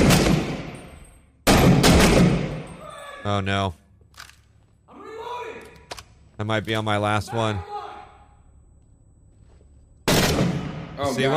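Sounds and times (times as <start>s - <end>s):
automatic gunfire from the video game Six Days in Fallujah: 1.5s - 2.6s, 10.1s - 10.8s
speech: 3.2s - 3.8s, 6.4s - 7.7s, 11.0s - 11.3s.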